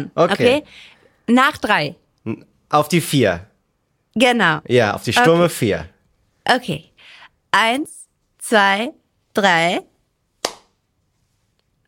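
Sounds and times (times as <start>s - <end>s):
speech: 0.0s - 3.5s, 4.2s - 6.9s, 7.5s - 9.9s
hand clap: 10.4s - 10.8s.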